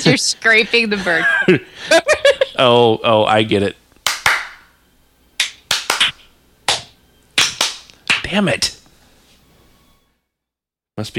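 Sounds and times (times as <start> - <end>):
speech: 0.0 - 3.8, 8.3 - 8.8, 11.0 - 11.1
hand claps to trigger a device: 4.0 - 4.7, 5.4 - 8.8.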